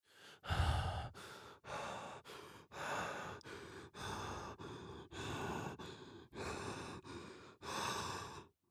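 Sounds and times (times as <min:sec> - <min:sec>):
panicked breathing: 0:00.0 - 0:08.5.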